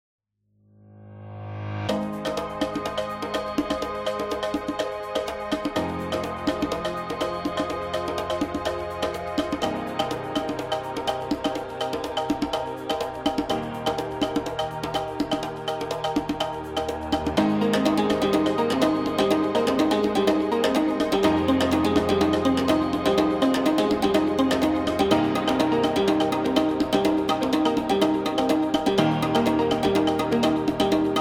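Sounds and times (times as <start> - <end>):
African music: 1.9 - 31.1.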